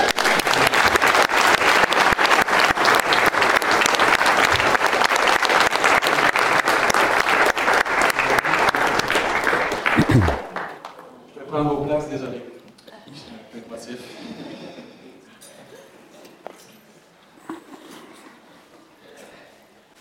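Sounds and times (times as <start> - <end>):
audience applause: 0.0 - 11.2.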